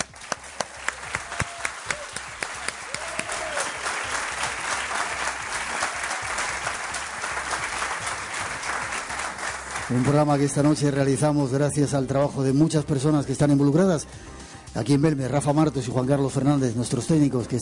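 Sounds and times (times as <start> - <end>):
audience applause: 0.0 - 10.8
speech: 9.9 - 17.6.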